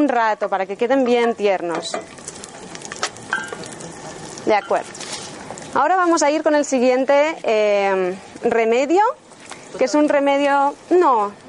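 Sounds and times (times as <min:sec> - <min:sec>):
speech: 0:00.0 - 0:02.3, 0:04.4 - 0:05.0, 0:05.7 - 0:11.4
garlic sizzling in a pan: 0:00.0 - 0:09.1.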